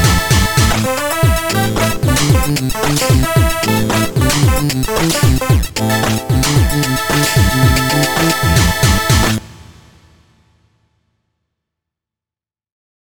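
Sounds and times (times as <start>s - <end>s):
1970s disco floor music: 0.0s - 9.4s.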